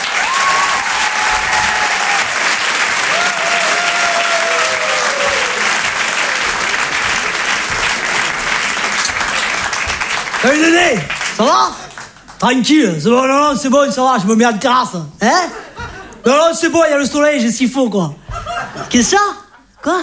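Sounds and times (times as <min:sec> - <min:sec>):
audience applause: 0:00.0 - 0:12.5
speech: 0:10.4 - 0:11.8, 0:12.4 - 0:15.6, 0:16.2 - 0:18.2, 0:18.9 - 0:20.0
laughter: 0:15.3 - 0:16.4, 0:18.2 - 0:20.0.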